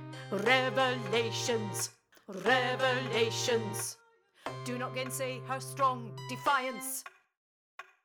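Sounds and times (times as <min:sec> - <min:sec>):
tenor singing a song verse: 0:00.0 - 0:07.0.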